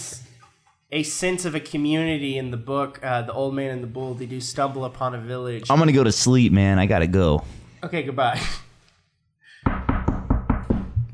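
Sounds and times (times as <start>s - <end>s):
speech: 0.9s - 8.6s
knuckles rapping on a door: 9.6s - 11.1s.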